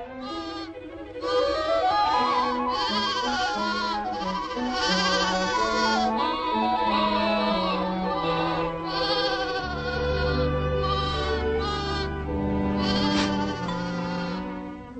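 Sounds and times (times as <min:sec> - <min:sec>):
flock of sheep and lambs bleating: 0:00.2 - 0:01.6, 0:02.4 - 0:14.6.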